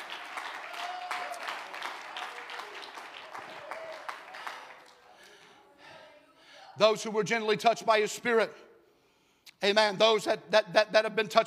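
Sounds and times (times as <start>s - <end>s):
audience clapping hands: 0.0s - 5.6s
speech: 6.8s - 8.6s, 9.6s - 11.4s.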